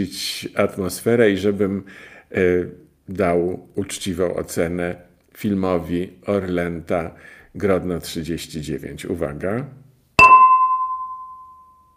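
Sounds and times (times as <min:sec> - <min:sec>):
speech: 0:00.0 - 0:09.8
glass tumbler struck like a gong: 0:10.2 - 0:11.9.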